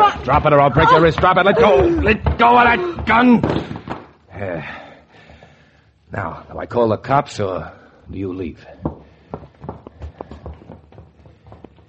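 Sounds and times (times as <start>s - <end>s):
footsteps clattering down a stairway: 0.0s - 4.2s, 8.6s - 11.8s
speech: 0.2s - 3.7s, 4.4s - 4.8s, 6.1s - 9.5s.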